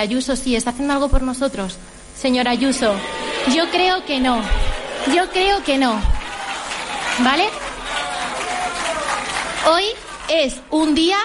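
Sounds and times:
speech: 0:00.0 - 0:06.2, 0:07.2 - 0:07.6, 0:09.6 - 0:11.2
crowd applause: 0:04.7 - 0:10.6.

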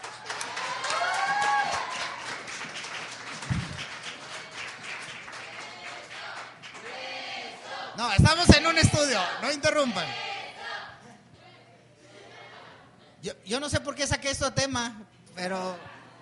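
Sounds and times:
audience applause: 0:00.0 - 0:06.9
people whooping: 0:00.2 - 0:02.4
speech: 0:08.0 - 0:10.3, 0:13.5 - 0:15.9.

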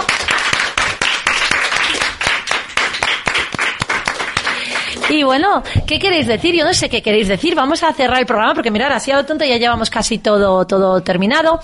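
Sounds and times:
audience applause: 0:00.0 - 0:05.2
speech: 0:05.1 - 0:11.6.

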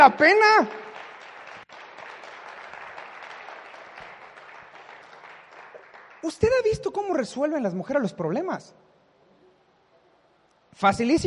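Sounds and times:
speech: 0:00.0 - 0:00.8, 0:06.2 - 0:08.8, 0:10.8 - 0:11.2
audience applause: 0:00.8 - 0:06.3.

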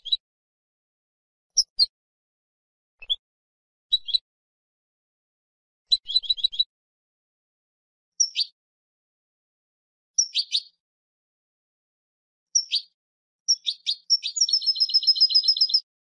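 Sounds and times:
goldfinch chirping: 0:03.9 - 0:04.2, 0:05.9 - 0:06.7, 0:08.2 - 0:08.5, 0:10.2 - 0:10.7, 0:13.5 - 0:15.8.

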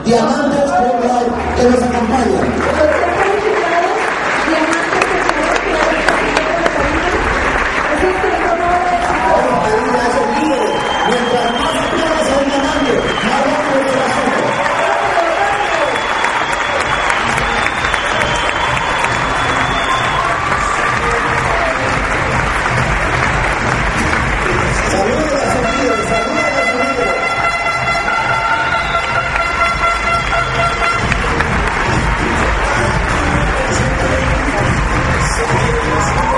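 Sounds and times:
speech: 0:00.0 - 0:02.9
large crowd applause: 0:00.0 - 0:36.3
whistles: 0:10.5 - 0:13.6, 0:15.8 - 0:20.4.

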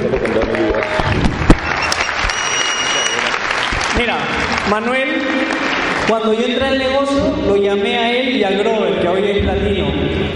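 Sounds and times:
crowd applauding: 0:00.0 - 0:06.6
speech: 0:04.2 - 0:10.3.

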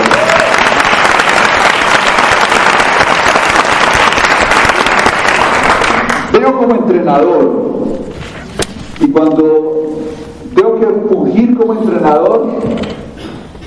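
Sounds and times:
crowd applauding: 0:00.0 - 0:06.3
speech: 0:06.4 - 0:08.0, 0:09.0 - 0:09.8, 0:10.6 - 0:13.0.

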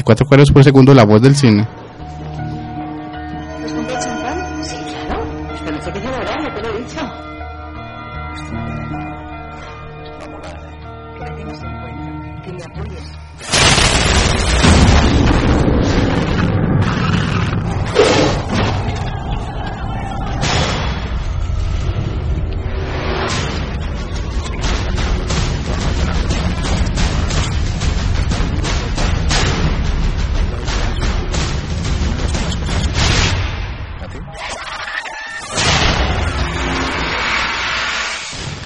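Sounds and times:
speech: 0:00.0 - 0:01.8
film trailer audio: 0:00.0 - 0:38.6
explosions in film trailer: 0:13.4 - 0:34.0, 0:35.5 - 0:38.6.

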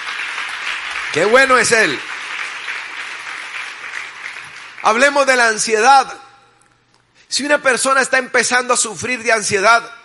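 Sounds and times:
crowd clapping: 0:00.0 - 0:05.7
speech: 0:01.1 - 0:02.1, 0:04.8 - 0:06.3, 0:07.3 - 0:10.0.

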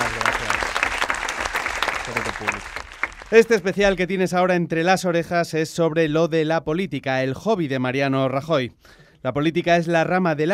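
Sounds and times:
canned audience applause: 0:00.0 - 0:04.0
speech: 0:03.3 - 0:10.5.

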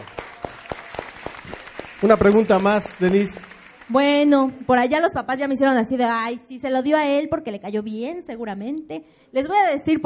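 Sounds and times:
audience applause: 0:00.0 - 0:05.0
speech: 0:02.0 - 0:10.0.

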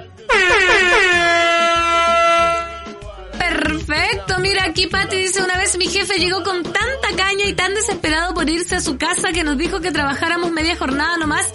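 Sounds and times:
air horn blast: 0:00.2 - 0:03.0
speech: 0:04.2 - 0:11.5.

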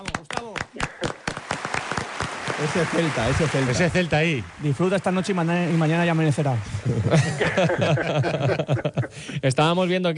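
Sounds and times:
applause, ovation: 0:00.0 - 0:06.8
speech: 0:02.6 - 0:10.1
laughter: 0:06.5 - 0:09.5.

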